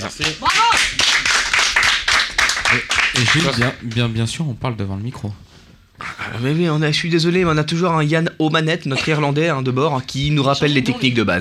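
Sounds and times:
speech: 0:00.0 - 0:01.3, 0:02.8 - 0:05.5, 0:06.3 - 0:11.3
audience applause: 0:00.0 - 0:04.1.

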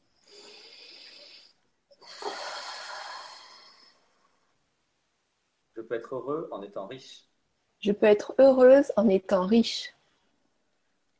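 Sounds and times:
deep breath: 0:00.2 - 0:04.6
speech: 0:05.8 - 0:10.0.

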